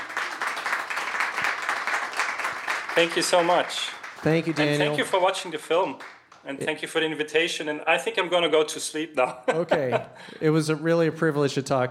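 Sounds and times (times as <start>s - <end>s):
audience applause greeting a guest: 0.0s - 6.3s
speech: 3.0s - 11.8s
laughter: 9.2s - 10.4s.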